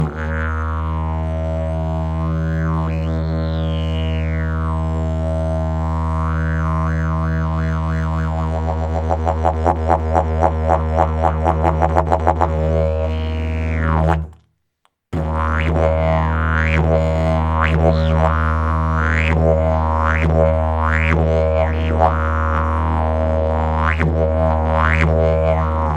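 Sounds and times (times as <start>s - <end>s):
didgeridoo: 0.0s - 14.4s, 15.2s - 25.9s.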